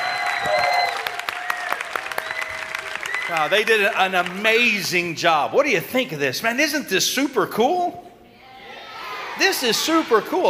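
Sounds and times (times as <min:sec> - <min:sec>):
audience clapping hands: 0:00.0 - 0:05.3
speech: 0:03.3 - 0:08.1, 0:09.4 - 0:10.4.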